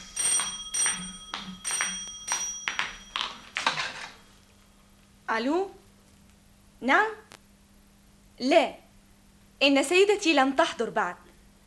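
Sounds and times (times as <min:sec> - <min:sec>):
telephone ringing: 0:00.0 - 0:04.3
speech: 0:05.3 - 0:05.8, 0:06.8 - 0:07.2, 0:08.4 - 0:08.8, 0:09.6 - 0:11.2.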